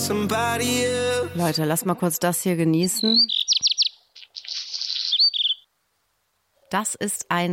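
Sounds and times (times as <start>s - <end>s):
speech: 0.1s - 3.5s, 6.7s - 7.5s
black redstart singing: 2.7s - 5.7s.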